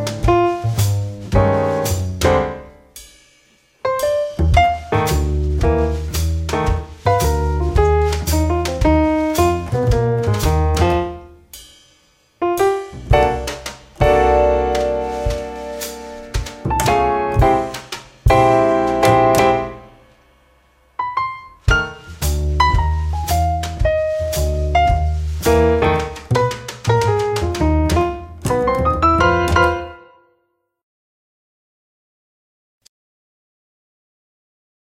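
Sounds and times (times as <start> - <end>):
tap dancing to jazz shuffles: 0.0 - 2.6, 4.4 - 11.2, 13.1 - 19.8, 21.7 - 29.9
jazz shuffle music: 0.0 - 30.2.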